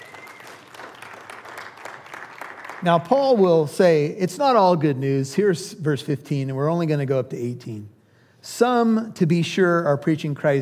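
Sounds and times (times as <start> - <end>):
audience clapping: 0.0 - 3.4
speech: 2.8 - 10.6.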